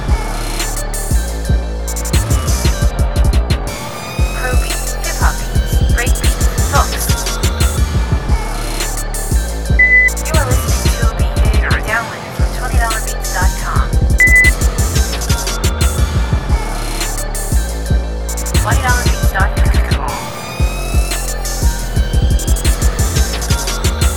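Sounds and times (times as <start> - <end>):
hip-hop music: 0.0 - 24.1.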